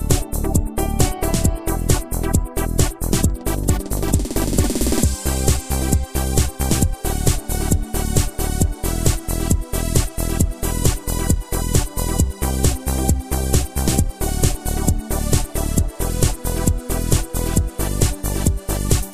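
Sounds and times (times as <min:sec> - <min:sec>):
trance music: 0:00.0 - 0:19.1.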